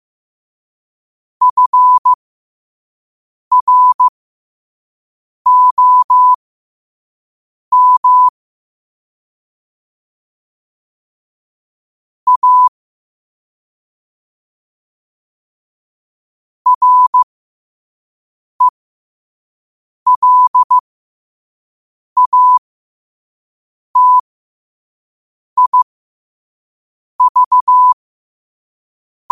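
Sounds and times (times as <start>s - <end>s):
morse code at 5 wpm: 1.4s - 2.2s, 3.5s - 4.1s, 5.5s - 6.4s, 7.7s - 8.3s, 12.3s - 12.7s, 16.7s - 17.2s, 20.1s - 20.8s, 22.2s - 22.6s, 24.0s - 24.2s, 25.6s - 25.9s, 27.2s - 28.0s.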